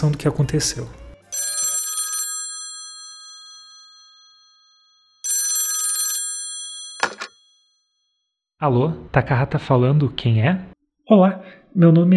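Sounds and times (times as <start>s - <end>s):
speech: 0.0s - 1.0s, 8.6s - 12.1s
telephone ringing with bright trilling electronic bursts: 1.3s - 8.2s.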